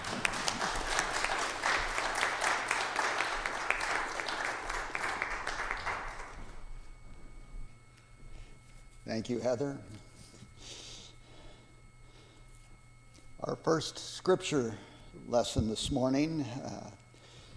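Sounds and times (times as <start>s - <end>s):
audience applauding: 0.0s - 6.6s
speech: 9.2s - 10.0s, 13.6s - 17.0s.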